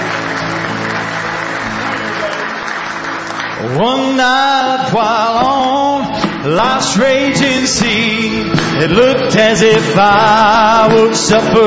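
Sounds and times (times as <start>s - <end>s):
audience hand clapping: 0.0s - 5.0s
speech: 3.6s - 11.6s.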